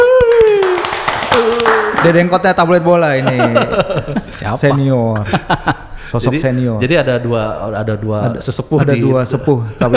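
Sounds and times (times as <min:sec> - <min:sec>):
audience clapping: 0:00.0 - 0:02.4
speech: 0:02.0 - 0:09.9
laughter: 0:03.1 - 0:09.9.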